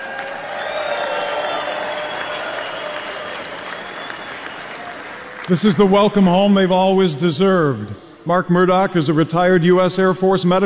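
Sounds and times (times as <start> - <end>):
faint cheering: 0.0 - 5.6
large crowd applauding: 0.0 - 6.7
speech: 5.5 - 10.6.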